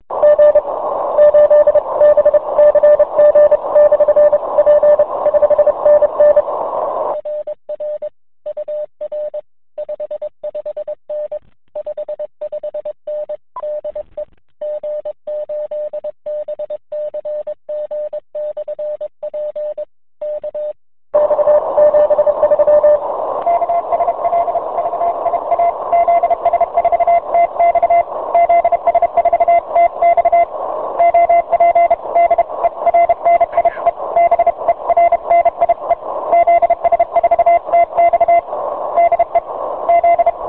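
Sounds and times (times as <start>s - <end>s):
CW radio contact morse code beeps: 0.2s - 6.5s, 14.6s - 40.4s.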